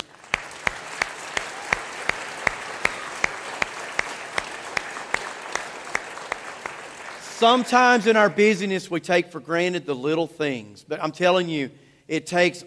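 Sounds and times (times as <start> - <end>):
audience applause: 0.0 - 8.0
speech: 7.4 - 12.6.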